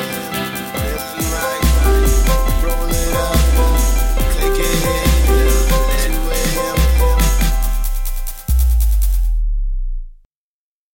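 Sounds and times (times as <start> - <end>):
soft dub music: 0.8 - 10.2.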